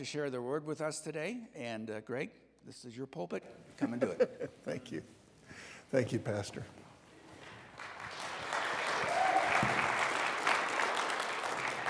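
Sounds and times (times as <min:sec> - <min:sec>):
speech: 0:00.0 - 0:06.9
golf clap polite scattered applause: 0:07.6 - 0:11.8.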